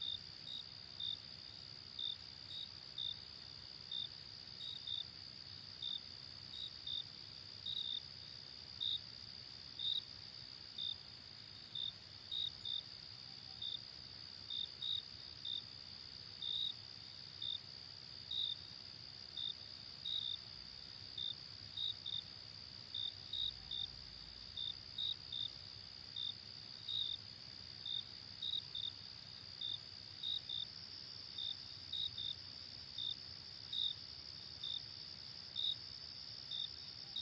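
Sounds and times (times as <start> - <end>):
cricket chirps: 0.0 - 37.2.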